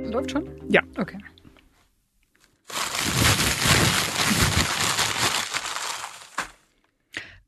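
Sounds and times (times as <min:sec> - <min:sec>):
speech: 0:00.1 - 0:01.4
plastic bag of fortune cookies rustling: 0:02.4 - 0:06.8.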